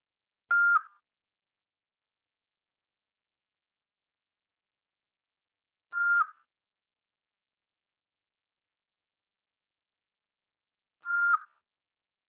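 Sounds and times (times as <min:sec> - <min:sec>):
voicemail recording beep: 0:00.5 - 0:00.9, 0:06.0 - 0:06.4, 0:11.0 - 0:11.5.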